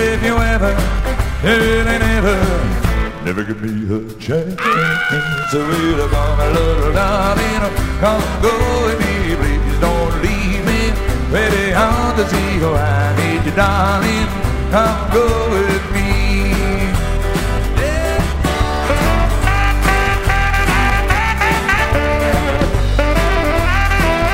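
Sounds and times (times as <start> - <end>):
country singer in Los Angeles: 0.0 - 24.3.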